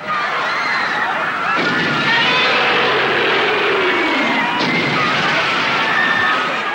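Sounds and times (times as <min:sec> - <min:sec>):
crowd screaming: 0:00.0 - 0:06.7
Godzilla stomping: 0:01.6 - 0:05.9.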